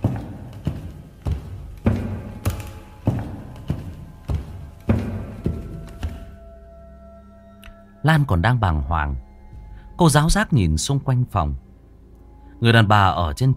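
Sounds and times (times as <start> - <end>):
footsteps approaching a door: 0.0 - 6.4
speech: 8.0 - 9.3, 10.0 - 11.7, 12.6 - 13.5.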